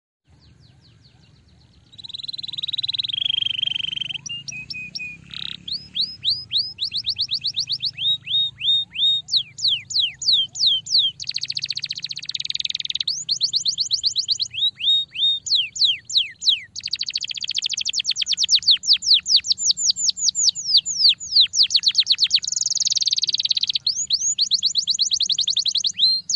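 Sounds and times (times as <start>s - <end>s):
Belgian canary singing rolling tours and buzzy trills: 0.3s - 26.3s.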